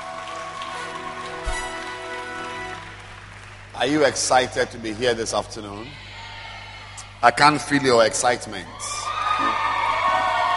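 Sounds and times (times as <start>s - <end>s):
congregation clapping hands: 0.0s - 5.3s, 9.1s - 10.5s
speech: 3.8s - 6.0s, 7.2s - 9.5s.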